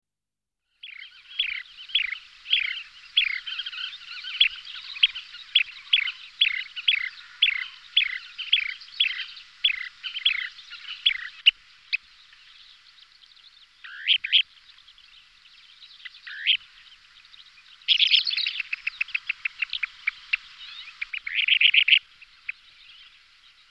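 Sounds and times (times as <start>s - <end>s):
Kentish plover short sharp calls: 0.8s - 23.7s.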